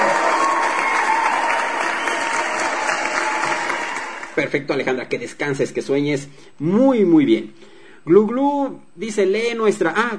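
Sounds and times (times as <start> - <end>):
applause: 0.0 - 4.4
speech: 4.4 - 10.1.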